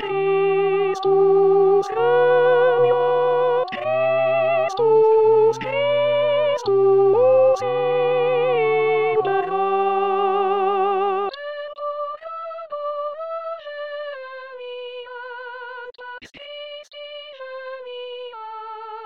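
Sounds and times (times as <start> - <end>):
tenors singing a chant: 0.0 - 13.6.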